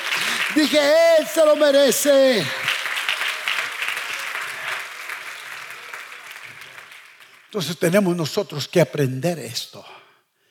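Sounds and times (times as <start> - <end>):
audience applause: 0.0 - 7.9
speech: 0.6 - 2.7, 7.5 - 10.0.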